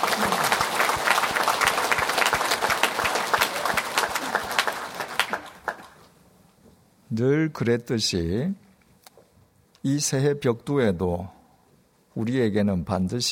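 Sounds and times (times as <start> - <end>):
audience applauding: 0.0 - 6.1
speech: 7.2 - 8.6, 9.8 - 11.4, 12.2 - 13.3.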